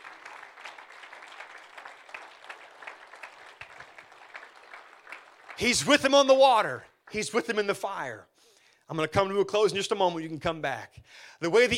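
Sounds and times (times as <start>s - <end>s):
church audience clapping hands: 0.0s - 7.6s
speech: 5.6s - 8.3s, 8.9s - 11.7s.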